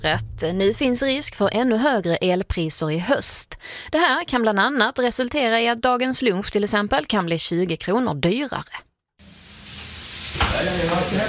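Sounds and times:
speech: 0.0s - 8.9s, 10.3s - 11.2s
food sizzling on an electric restaurant grill: 9.2s - 11.2s.

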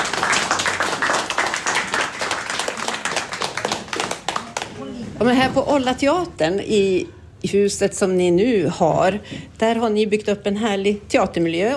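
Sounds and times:
applause: 0.0s - 4.9s
speech: 5.2s - 11.7s.

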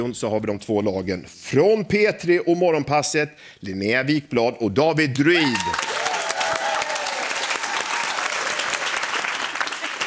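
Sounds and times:
speech: 0.0s - 5.9s
person clapping: 5.5s - 10.0s.

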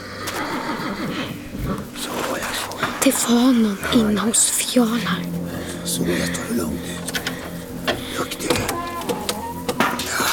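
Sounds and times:
horse neighing uneasily in a stable: 0.0s - 2.8s, 5.8s - 10.3s
speech: 3.1s - 7.2s.

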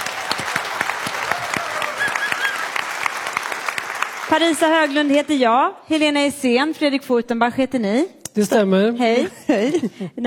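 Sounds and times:
audience applause: 0.0s - 5.4s
speech: 4.3s - 10.2s.

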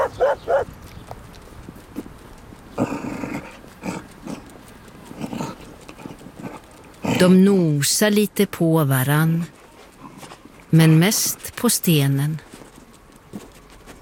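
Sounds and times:
dog barking: 0.0s - 0.7s
dog growling: 0.0s - 0.7s, 2.7s - 7.4s
speech: 0.3s - 0.8s, 7.2s - 9.6s, 10.7s - 12.5s.

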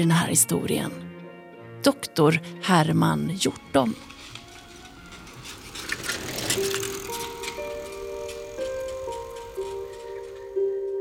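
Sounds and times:
speech: 0.0s - 1.1s, 1.8s - 4.2s
bicycle rattling and ticking: 3.6s - 10.8s.

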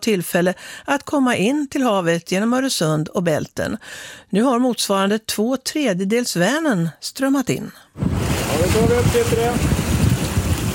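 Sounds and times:
speech: 0.0s - 9.8s
wind on the deck of research vessel Svea at sea: 8.0s - 10.7s.

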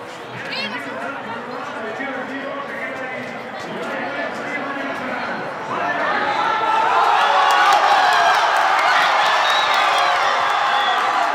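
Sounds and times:
crowd cheering victory celebration in Plaza de Colón in Madrid: 3.7s - 11.3s
whistles: 9.0s - 11.2s.

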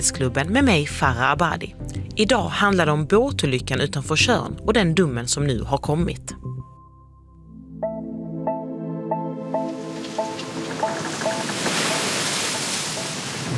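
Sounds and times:
speech: 0.0s - 6.5s
ocean waves lapping: 9.4s - 13.5s.

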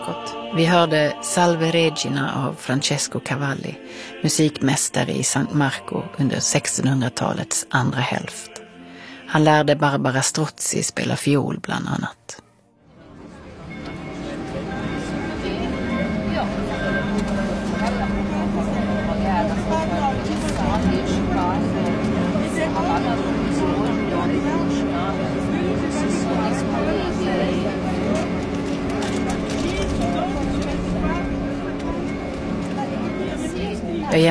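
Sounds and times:
speech: 0.1s - 8.6s, 9.3s - 12.4s
water taxi motor droning: 13.0s - 34.2s.

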